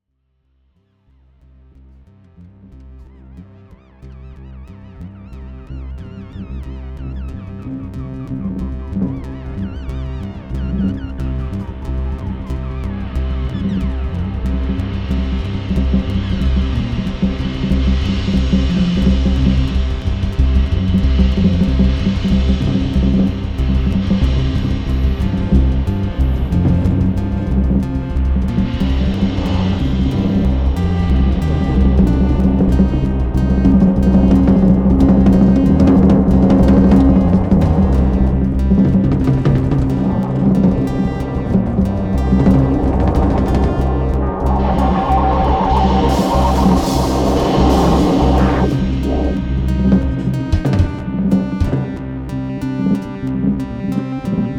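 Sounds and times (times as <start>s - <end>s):
Pro-One synthesizer bass with resampled chaos: 1.2s - 54.5s.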